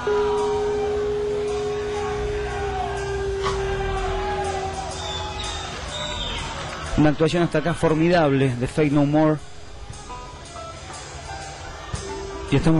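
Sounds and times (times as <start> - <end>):
sustained low hum: 0.0 - 5.7
huge crowd low murmur: 0.0 - 7.0, 9.6 - 12.7
scattered shouts: 0.4 - 7.0
whistles: 3.3 - 6.8
speech: 7.0 - 9.5, 12.5 - 12.7.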